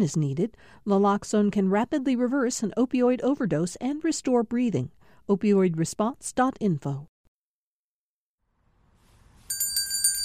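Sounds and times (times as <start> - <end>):
speech: 0.0 - 7.1
bell ringing: 9.5 - 10.2.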